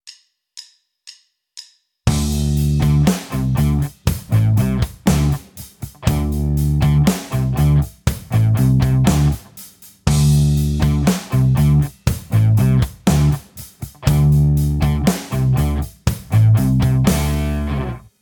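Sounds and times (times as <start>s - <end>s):
guitar tapped harmonics: 2.1s - 5.4s, 6.0s - 9.4s, 10.1s - 13.4s, 14.0s - 18.0s.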